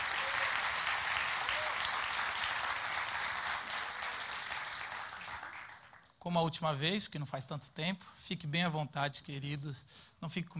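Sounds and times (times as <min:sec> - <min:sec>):
crowd applauding: 0:00.0 - 0:06.1
speech: 0:06.2 - 0:10.5.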